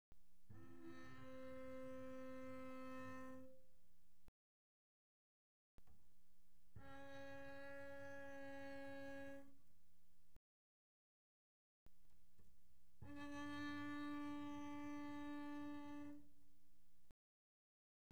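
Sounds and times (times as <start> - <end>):
double bass bowed pianissimo on D string: 0.4 - 4.1, 6.6 - 9.8, 12.9 - 16.9.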